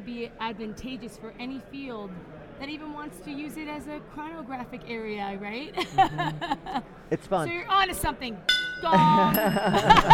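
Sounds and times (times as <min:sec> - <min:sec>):
speech: 0:00.0 - 0:10.1
laughter: 0:05.8 - 0:07.4, 0:08.9 - 0:10.1
bell ringing as a signal or alarm: 0:08.5 - 0:10.1.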